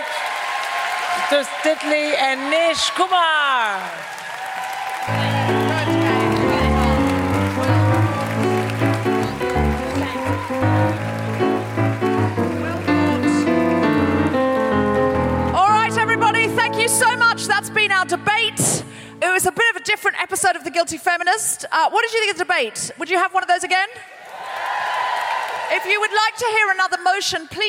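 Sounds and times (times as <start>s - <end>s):
audience applause: 0.0s - 17.6s, 24.2s - 26.3s
speech: 1.3s - 4.2s, 19.4s - 24.2s, 25.7s - 27.6s
loud music: 5.1s - 19.3s.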